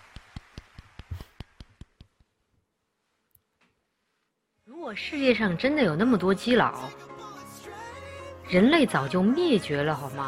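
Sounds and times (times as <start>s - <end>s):
hands clapping: 0.0s - 2.3s
speech: 4.9s - 7.1s, 8.5s - 10.2s.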